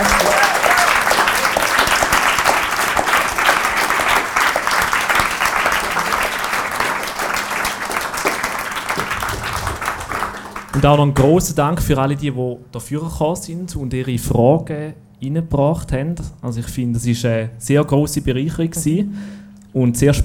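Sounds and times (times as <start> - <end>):
live audience applause: 0.0 - 11.0
speech: 10.8 - 20.2.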